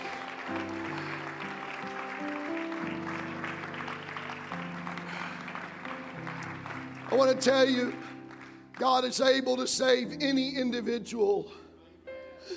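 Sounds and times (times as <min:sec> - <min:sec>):
audience clapping hands: 0:00.0 - 0:09.7
loud organ-like chords: 0:00.0 - 0:12.5
speech: 0:07.1 - 0:08.1, 0:08.8 - 0:11.6.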